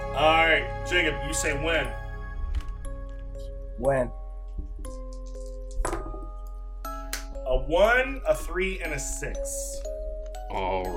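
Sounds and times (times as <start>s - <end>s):
speech: 0.2s - 2.0s, 3.8s - 4.2s, 7.5s - 9.9s, 10.5s - 10.9s
dice clattering onto a hard surface: 4.9s - 6.3s.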